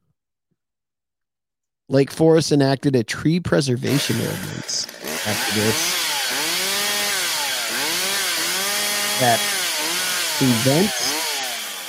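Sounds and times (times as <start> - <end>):
speech: 1.9 - 6.1, 9.2 - 9.6, 10.4 - 11.2
chainsaw engine droning and revving, blade biting into wood: 3.8 - 11.8.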